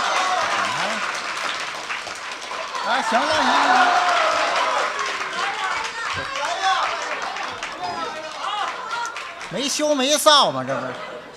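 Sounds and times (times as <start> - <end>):
audience applause: 0.0 - 11.3
speech: 2.9 - 4.1, 9.6 - 11.1.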